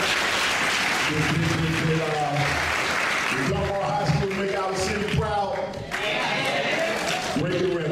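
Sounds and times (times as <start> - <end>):
applause for a coach at Dunbar High School: 0.0 - 7.9
speech: 1.1 - 2.1.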